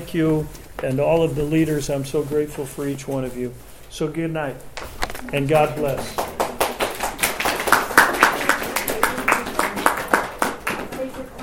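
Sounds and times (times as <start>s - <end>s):
speech: 0.1s - 6.2s
audience clapping: 5.5s - 11.4s.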